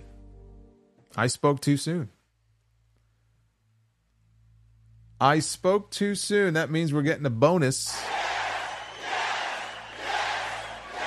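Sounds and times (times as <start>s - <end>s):
speech: 1.2s - 2.2s, 5.2s - 8.2s
wrestling video game crowd cheering: 7.9s - 11.0s.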